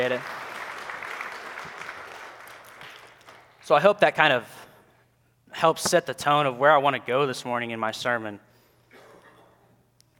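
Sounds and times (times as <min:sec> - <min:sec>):
speech: 0:00.0 - 0:00.4, 0:03.7 - 0:04.6, 0:05.5 - 0:08.5
crowd applauding: 0:00.0 - 0:03.7.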